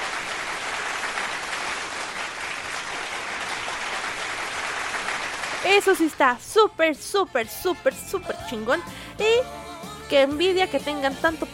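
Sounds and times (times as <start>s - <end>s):
crowd applause: 0.0s - 6.2s
speech: 5.6s - 11.5s.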